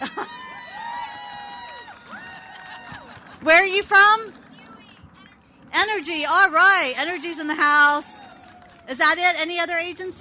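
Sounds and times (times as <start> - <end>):
small audience screaming and cheering: 0.0 - 3.4, 7.0 - 8.9
speech: 3.4 - 4.4, 5.8 - 8.1, 8.9 - 10.1.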